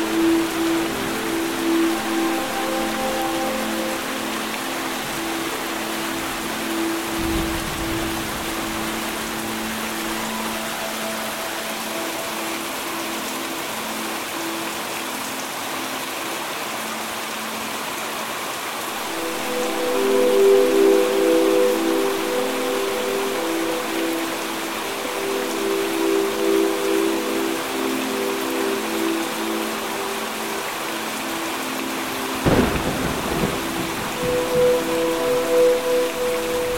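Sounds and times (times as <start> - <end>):
rain: 0.0 - 36.7
thunder: 32.4 - 34.1.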